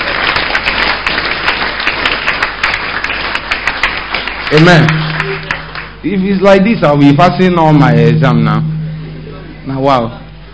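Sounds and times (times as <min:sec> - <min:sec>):
audience clapping: 0:00.0 - 0:06.5
speech: 0:04.5 - 0:05.1, 0:06.0 - 0:08.7, 0:09.6 - 0:10.2.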